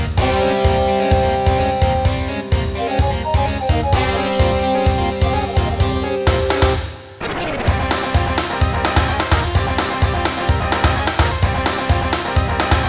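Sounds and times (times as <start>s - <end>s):
boss battle music: 0.2s - 12.8s.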